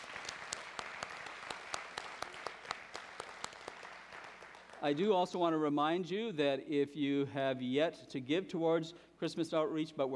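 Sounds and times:
audience applause: 0.0 - 5.0
speech: 4.8 - 10.1.

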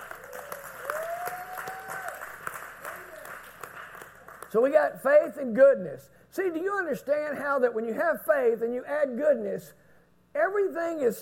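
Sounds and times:
audience clapping hands: 0.0 - 4.6
speech: 4.5 - 9.8, 10.4 - 11.2.

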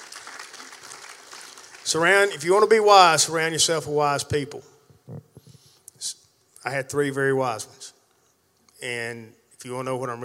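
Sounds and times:
audience applause: 0.0 - 2.0
speech: 1.9 - 4.7, 6.6 - 7.9, 8.8 - 10.2.

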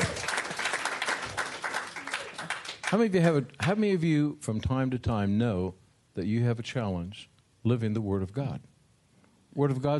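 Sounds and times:
audience clapping hands: 0.0 - 3.4
speech: 2.9 - 8.7, 9.6 - 9.9.

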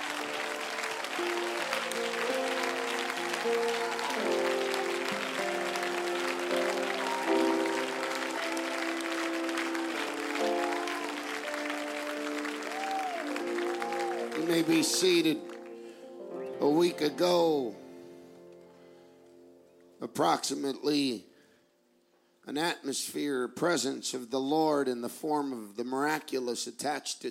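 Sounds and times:
audience clapping: 0.0 - 17.5
speech: 3.4 - 3.8, 14.6 - 15.5, 16.6 - 17.8, 20.1 - 21.3, 22.4 - 27.2.

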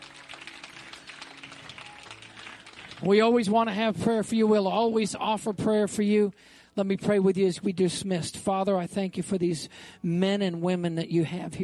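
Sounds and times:
crowd applauding: 0.0 - 3.8
speech: 3.0 - 11.6.

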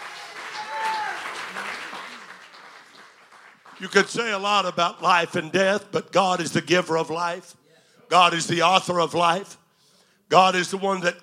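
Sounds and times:
audience clapping hands: 0.0 - 4.8
speech: 3.8 - 9.6, 10.3 - 11.2.

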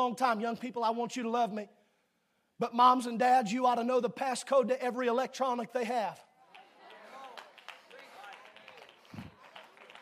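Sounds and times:
speech: 0.0 - 1.8, 2.6 - 6.3
golf clap: 6.4 - 10.0.

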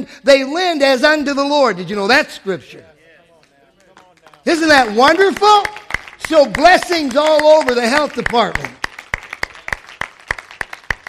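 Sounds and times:
speech: 0.0 - 2.9, 4.4 - 8.8
audience clapping in rhythm: 3.3 - 11.0.

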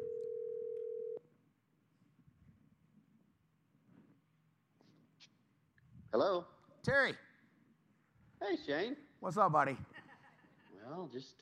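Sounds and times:
telephone line tone: 0.0 - 1.2
speech: 6.1 - 7.3, 8.4 - 10.0, 10.9 - 11.4
laughter: 9.8 - 11.0.

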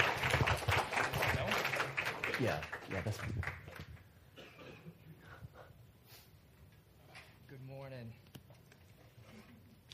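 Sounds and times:
round of applause: 0.0 - 4.1
speech: 2.4 - 3.6.

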